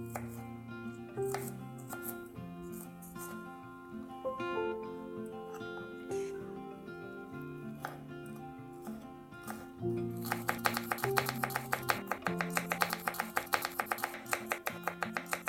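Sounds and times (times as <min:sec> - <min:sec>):
soft music: 0:00.0 - 0:15.4
knife chopping garlic on a board into a salad: 0:01.2 - 0:02.2, 0:10.2 - 0:15.4.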